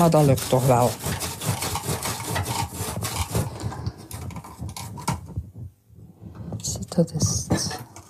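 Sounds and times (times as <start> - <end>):
speech: 0.0 - 1.3, 7.0 - 7.3
sharp knife pressed through firm raw fennel: 0.0 - 5.2.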